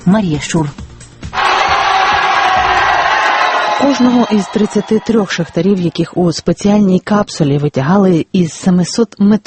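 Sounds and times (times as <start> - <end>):
speech: 0.0 - 0.8, 3.8 - 9.4
relatives cheering as trapped miners of Chile's San José mine are lifted: 1.4 - 6.2.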